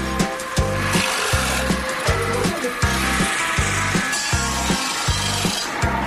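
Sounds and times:
buzz ring saw cutting wood: 0.0s - 6.0s.

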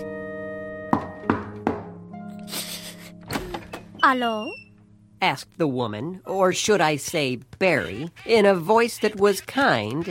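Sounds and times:
soft knocks on a door: 1.0s - 1.9s
speech: 4.0s - 4.6s, 5.2s - 10.0s.

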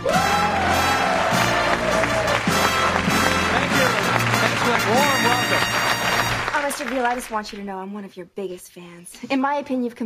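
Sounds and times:
studio audience applause and cheering welcoming Bob Vila: 0.0s - 7.5s
speech: 6.8s - 10.0s.

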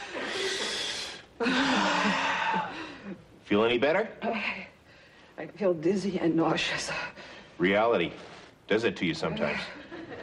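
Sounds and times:
deep breaths taken in an office: 0.0s - 3.3s, 4.3s - 5.4s, 6.9s - 7.6s
speech: 1.4s - 2.6s, 3.5s - 4.7s, 5.4s - 9.8s.

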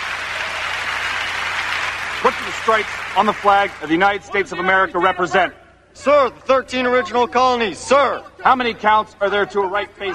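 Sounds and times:
people clapping: 0.0s - 4.1s
speech: 2.2s - 10.1s.

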